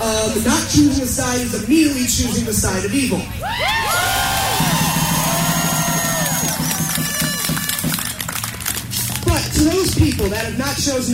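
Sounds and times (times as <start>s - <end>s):
speech: 0.2s - 4.8s, 9.6s - 11.1s
people booing: 3.4s - 8.0s.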